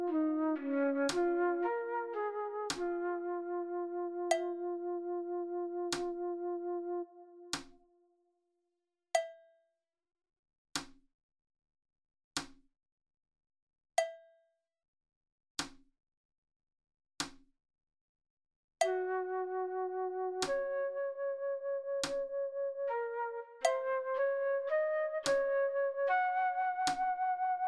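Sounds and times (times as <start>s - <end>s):
slow flute playing: 0.0s - 7.8s, 18.9s - 27.6s.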